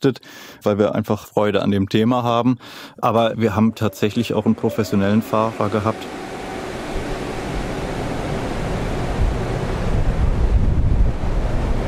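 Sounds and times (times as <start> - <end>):
speech: 0.0 - 6.3
giant wind tunnel fan blowing air: 3.0 - 11.8.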